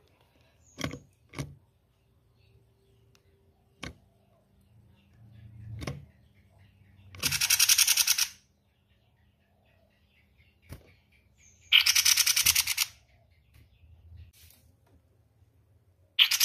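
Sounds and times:
spiderhunter harsh rattling bursts of rapid pulses: 7.1s - 8.4s, 11.6s - 13.1s, 16.2s - 16.4s.

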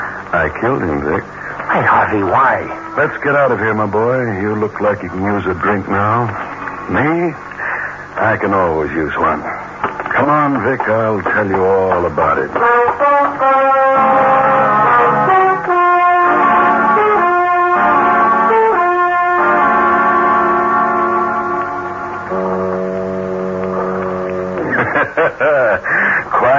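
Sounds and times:
speech: 0.3s - 7.5s, 8.2s - 9.6s, 10.2s - 14.9s, 25.2s - 26.5s
deep droning foghorns sounding near the waterfront: 1.3s - 4.2s, 12.2s - 24.9s
laughter: 24.6s - 26.5s.

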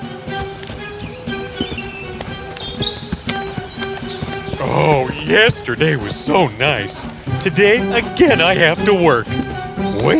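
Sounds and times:
donkey hooves clip-clopping while walking: 0.0s - 10.1s
speech: 4.7s - 9.4s, 10.0s - 10.1s.

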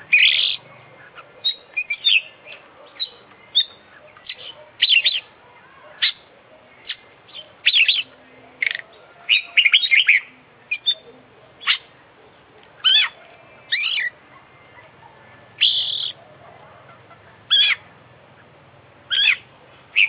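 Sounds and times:
Oriental magpie-robin singing: 0.1s - 5.3s, 6.0s - 11.9s, 12.8s - 14.2s, 15.6s - 16.2s, 17.5s - 17.8s, 19.1s - 20.0s.

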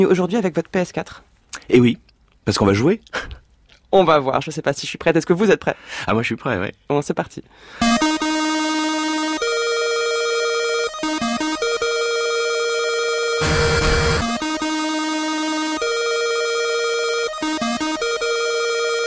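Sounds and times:
speech: 0.0s - 3.3s, 3.9s - 7.8s
switchboard telephone ringing with an electronic ringtone: 7.8s - 19.0s.

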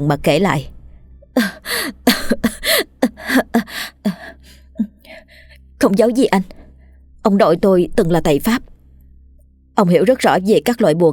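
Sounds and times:
speech: 0.0s - 0.7s, 1.4s - 2.0s, 5.8s - 6.6s, 7.2s - 8.7s, 9.8s - 11.1s
woman's dry coughs: 2.0s - 3.7s.

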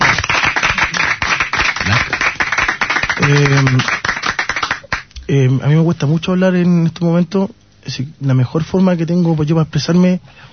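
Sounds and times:
applause: 0.0s - 5.1s
speech: 3.3s - 4.1s, 5.3s - 10.5s.

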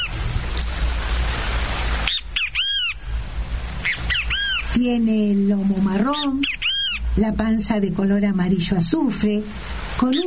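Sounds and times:
great kiskadee calling: 0.0s - 0.2s, 2.0s - 3.1s, 3.8s - 4.8s, 5.9s - 7.2s, 10.0s - 10.2s
rushing noise: 0.0s - 10.2s
speech: 4.8s - 6.6s, 7.2s - 10.2s.

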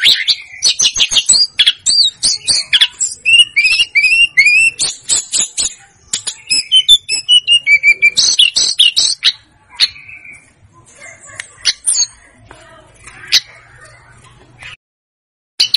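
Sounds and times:
snowy-browed flycatcher singing a medley of chips and whistles: 0.0s - 10.5s.

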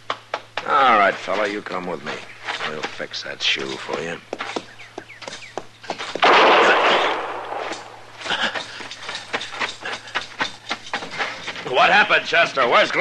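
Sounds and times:
speech: 0.7s - 4.6s, 11.8s - 13.0s
gunshots: 6.2s - 8.1s.

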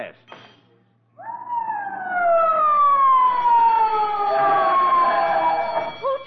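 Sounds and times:
fire alarm siren: 1.2s - 6.2s.

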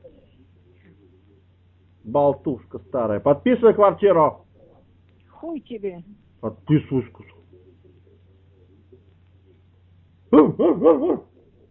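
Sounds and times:
faint low hum: 0.0s - 11.6s
speech: 2.1s - 4.4s, 5.4s - 7.4s, 10.4s - 11.3s
dog yelping barks: 10.3s - 11.4s.

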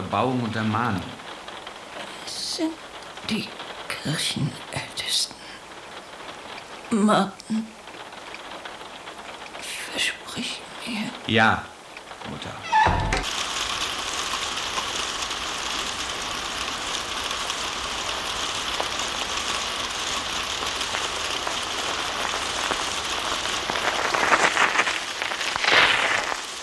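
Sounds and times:
steady hiss: 0.0s - 26.6s
speech: 0.1s - 1.2s, 2.3s - 5.4s, 6.9s - 7.8s, 10.0s - 12.7s
bicycle wheels ratcheting as bikes are parked: 12.7s - 26.6s.

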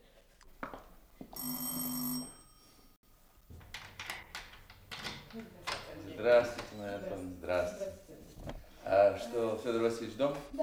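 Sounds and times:
doorbell ringing: 1.4s - 3.0s
speech: 5.4s - 8.2s, 8.9s - 10.6s.

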